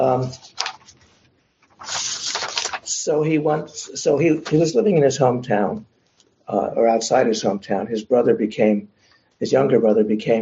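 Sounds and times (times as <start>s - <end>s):
speech: 0.0s - 0.6s, 3.0s - 5.9s, 6.5s - 10.3s
paper rustling: 0.0s - 4.8s.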